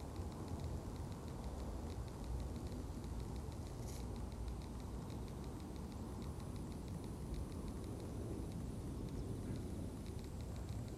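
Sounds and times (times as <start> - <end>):
autumn insects chirping: 0.0 - 10.9
distant traffic rumble: 0.0 - 10.9.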